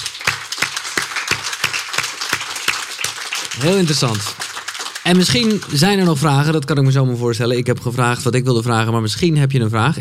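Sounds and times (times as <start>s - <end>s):
audience applause: 0.0s - 6.9s
speech: 3.6s - 4.4s, 5.0s - 9.9s.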